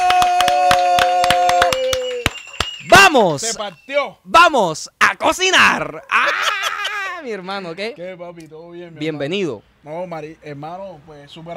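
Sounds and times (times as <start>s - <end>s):
scattered uneven hand claps: 0.0s - 3.0s
speech: 3.1s - 6.6s, 7.2s - 11.5s
laughter: 6.0s - 7.9s.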